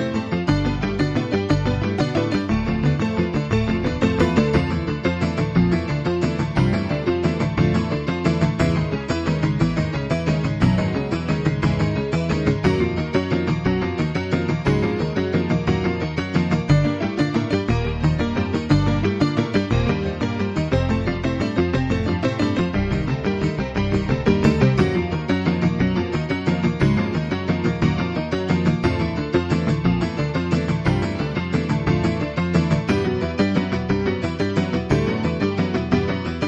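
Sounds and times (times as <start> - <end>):
excited piano playing: 0.0 - 36.4.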